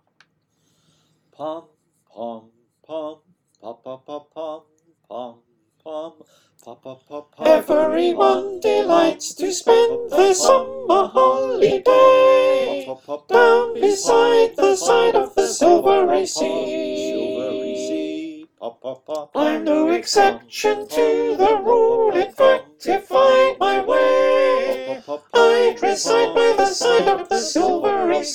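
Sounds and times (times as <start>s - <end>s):
soprano singing verse parts: 7.4s - 18.4s, 19.4s - 28.3s.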